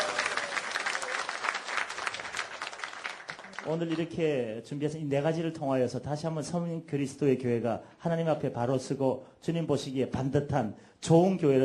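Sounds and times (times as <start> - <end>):
audience applauding: 0.0 - 4.2
speech: 3.6 - 11.6.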